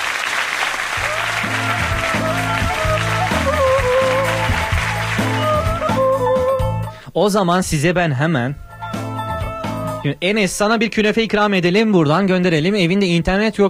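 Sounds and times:
loud steady applause with cheering crowd noise: 0.0s - 6.6s
upbeat music with stepping bass line and bright melody: 0.9s - 6.9s, 8.5s - 10.2s
speech: 7.2s - 8.6s, 10.0s - 13.6s.

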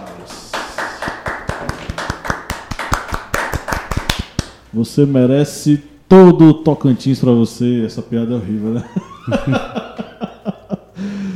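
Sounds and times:
clapping: 0.0s - 4.6s
speech: 4.7s - 10.1s
laughter: 8.7s - 11.0s.

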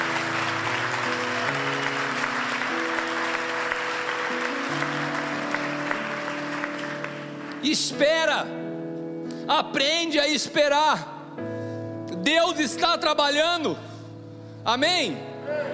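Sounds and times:
audience applauding: 0.0s - 8.0s
speech: 7.6s - 8.7s, 9.5s - 11.5s, 12.3s - 13.9s, 14.6s - 15.7s.

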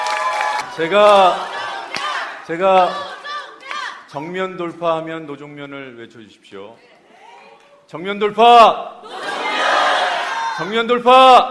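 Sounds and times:
crowd clapping and cheering: 0.0s - 4.1s
speech: 0.8s - 1.5s, 2.5s - 3.1s, 4.1s - 6.9s, 7.9s - 9.2s, 10.6s - 11.4s.

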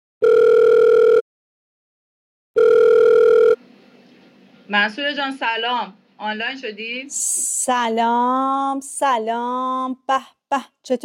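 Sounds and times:
outgoing phone call ringing tone: 0.2s - 1.2s, 2.6s - 3.6s
speech: 4.7s - 11.0s.

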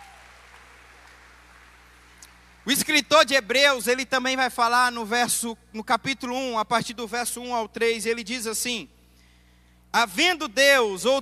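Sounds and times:
audience applause: 0.0s - 2.7s
speech: 2.6s - 9.0s, 9.9s - 11.2s.

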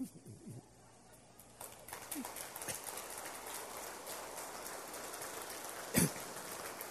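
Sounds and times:
crowd applause: 1.5s - 6.9s.

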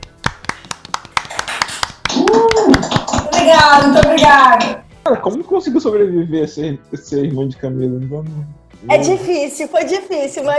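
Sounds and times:
audience clapping for a guest: 0.0s - 4.8s
speech: 3.6s - 10.5s.

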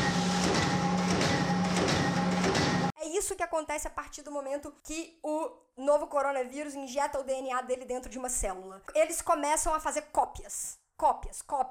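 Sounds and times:
photocopier machines running: 0.0s - 2.9s
speech: 3.5s - 11.6s.

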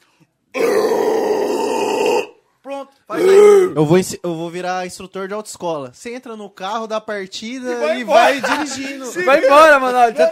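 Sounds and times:
distorted vocal drive growl: 0.6s - 2.4s
speech: 3.2s - 10.2s
laughter: 7.8s - 10.2s.

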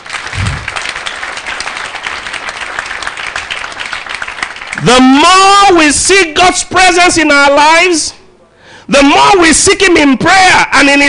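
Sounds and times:
audience applauding: 0.0s - 4.9s
speech: 4.8s - 8.2s, 8.9s - 11.0s.

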